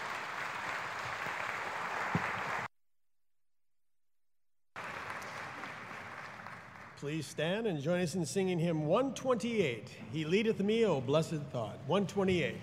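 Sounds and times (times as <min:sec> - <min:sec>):
round of applause for graduates: 0:00.0 - 0:02.7, 0:04.8 - 0:07.0
speech: 0:07.0 - 0:12.6.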